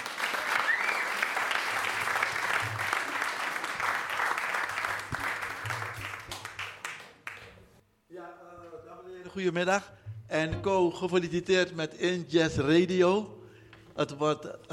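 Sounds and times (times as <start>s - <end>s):
audience applause: 0.0s - 7.5s
speech: 9.4s - 13.4s, 14.0s - 14.7s.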